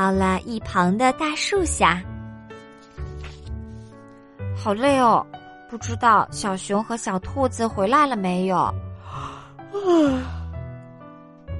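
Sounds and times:
speech: 0:00.0 - 0:02.1, 0:04.6 - 0:10.4
yawn: 0:09.2 - 0:10.4.

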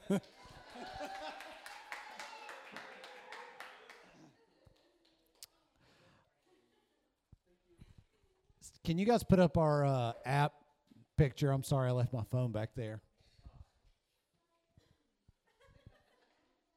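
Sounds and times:
child clapping hands: 0:00.0 - 0:04.2
laughter: 0:00.0 - 0:05.0, 0:15.4 - 0:16.7
speech: 0:00.1 - 0:00.5, 0:08.9 - 0:10.6, 0:11.2 - 0:13.1.

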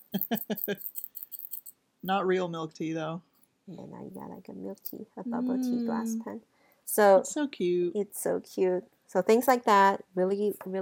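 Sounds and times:
small bottle of pearl ink being shaken: 0:00.0 - 0:01.7
speech: 0:00.1 - 0:01.0, 0:02.0 - 0:10.8.

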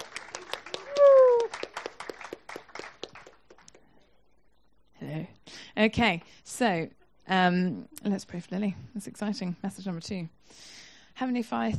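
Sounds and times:
crowd clapping: 0:00.0 - 0:03.8
person whooping: 0:00.7 - 0:01.7
speech: 0:05.8 - 0:11.7.

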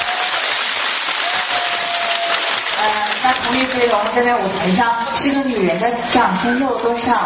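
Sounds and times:
audience applause: 0:00.0 - 0:04.2
speech: 0:02.8 - 0:07.2.

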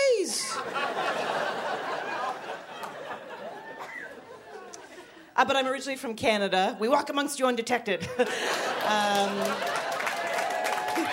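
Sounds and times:
laughter: 0:00.3 - 0:05.2, 0:08.0 - 0:11.1
audience clapping: 0:02.7 - 0:03.1, 0:08.2 - 0:11.1
speech: 0:05.4 - 0:09.8.

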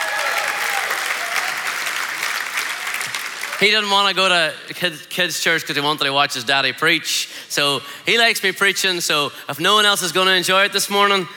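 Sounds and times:
crowd clapping and cheering: 0:00.0 - 0:03.8
speech: 0:03.6 - 0:11.3.

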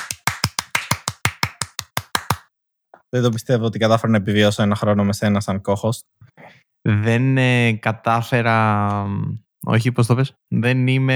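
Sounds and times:
hand clapping: 0:00.0 - 0:02.4
speech: 0:03.1 - 0:06.2, 0:06.8 - 0:11.1.

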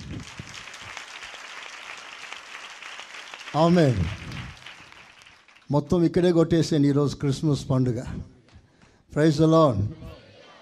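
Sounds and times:
audience clapping at a Christmas gathering: 0:00.0 - 0:06.1
speech: 0:03.5 - 0:04.2, 0:05.7 - 0:08.4, 0:09.1 - 0:10.2.

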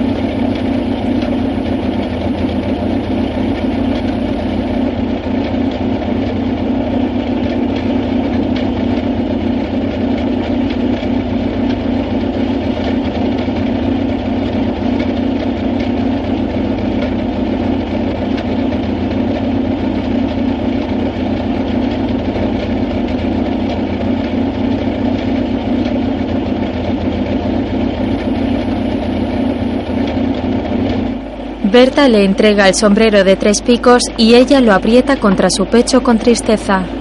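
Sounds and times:
vehicle engine idling: 0:00.0 - 0:36.9
speech: 0:31.8 - 0:36.9.

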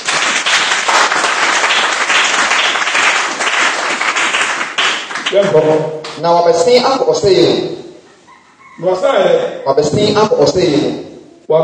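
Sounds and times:
church congregation clapping for the Lord: 0:00.0 - 0:06.2
speech: 0:05.3 - 0:07.8, 0:08.8 - 0:11.6.

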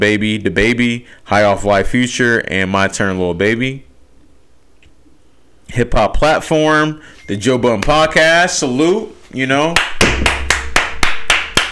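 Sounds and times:
speech: 0:00.0 - 0:03.9, 0:05.7 - 0:10.1
hands clapping: 0:09.7 - 0:11.7.

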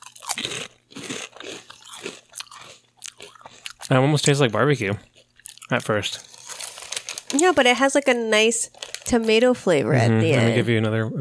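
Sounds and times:
crunchy bite of a potato chip: 0:00.0 - 0:04.4, 0:05.1 - 0:07.3
speech: 0:03.9 - 0:05.1, 0:05.7 - 0:06.3, 0:07.3 - 0:11.1.

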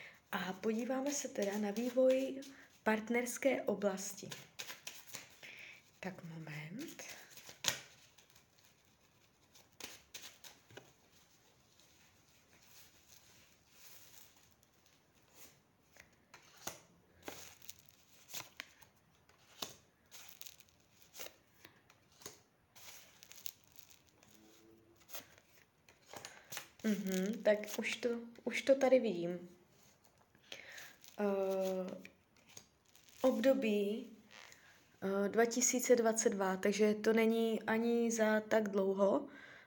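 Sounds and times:
speech: 0:00.3 - 0:04.7, 0:06.0 - 0:07.2, 0:27.1 - 0:29.6, 0:31.2 - 0:32.1, 0:33.2 - 0:34.2, 0:35.0 - 0:39.5
tarot cards being shuffled: 0:00.6 - 0:02.5, 0:04.1 - 0:05.4, 0:06.8 - 0:28.0, 0:29.8 - 0:33.6.

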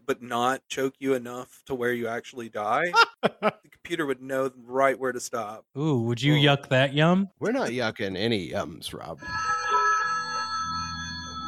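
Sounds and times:
speech: 0:00.1 - 0:09.5
telephone ringing: 0:09.2 - 0:11.4.

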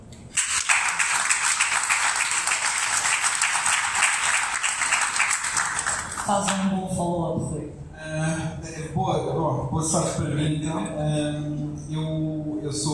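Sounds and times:
audience applause: 0:00.4 - 0:06.6
speech: 0:06.3 - 0:12.9.

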